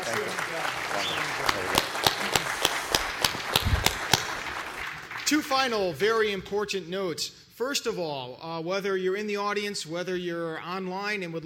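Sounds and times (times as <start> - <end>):
audience applause: 0.0 - 5.5
speech: 5.3 - 11.4.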